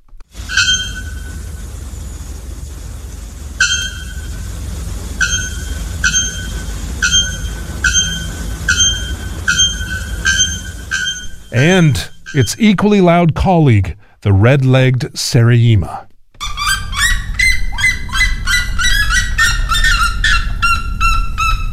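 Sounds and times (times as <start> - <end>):
bare-throated bellbird shrieking: 0.4 - 1.5, 3.6 - 4.5, 5.2 - 12.6, 16.4 - 21.7
speech: 11.6 - 16.1.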